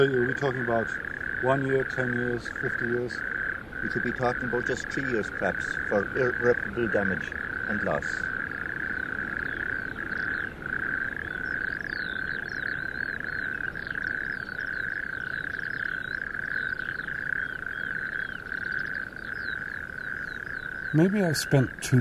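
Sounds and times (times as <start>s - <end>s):
speech: 0.0s - 8.3s, 21.0s - 22.0s
chorus of toads trilling: 0.0s - 22.0s
faint bird-like chirps: 0.0s - 22.0s.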